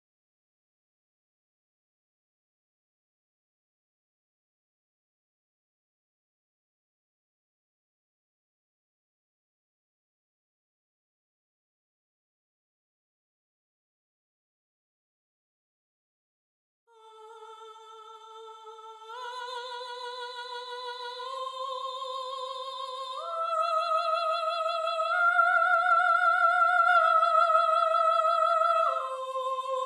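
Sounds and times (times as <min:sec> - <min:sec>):
soprano singing: 0:16.9 - 0:29.8.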